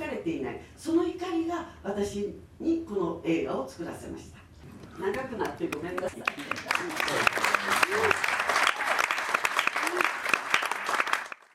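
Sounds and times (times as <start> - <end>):
speech: 0.2 - 4.4, 5.0 - 8.2
audience applause: 5.7 - 11.5.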